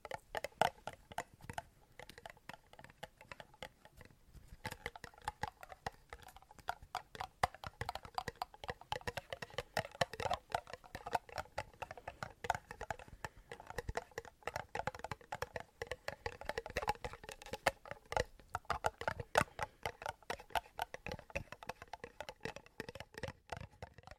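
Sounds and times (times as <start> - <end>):
intense ASMR tapping: 0.0 - 24.1.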